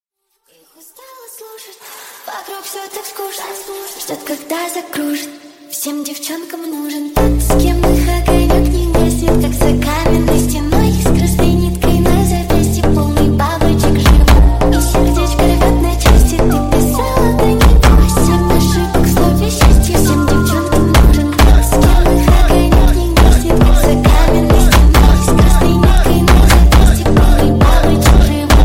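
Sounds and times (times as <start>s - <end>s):
chastushki hardstyle remix: 7.2s - 28.6s.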